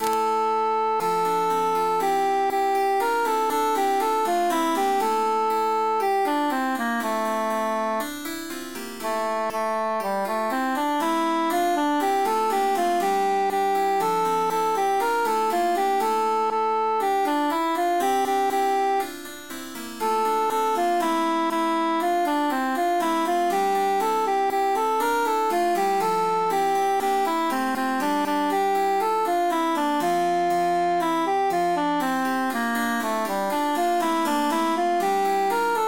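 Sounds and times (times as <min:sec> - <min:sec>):
emphasized cantus melody: 0:00.0 - 0:35.8.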